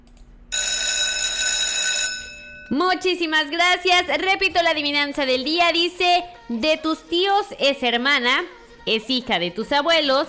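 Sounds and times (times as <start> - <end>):
alarm bell ringing: 0.5 - 3.0
speech: 2.7 - 10.2.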